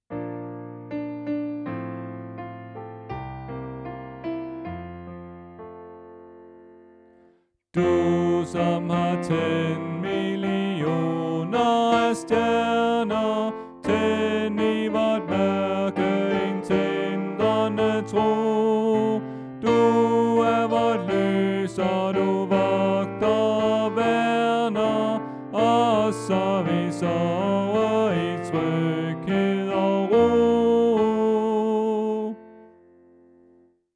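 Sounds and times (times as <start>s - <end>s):
tenor singing: 7.8s - 32.6s.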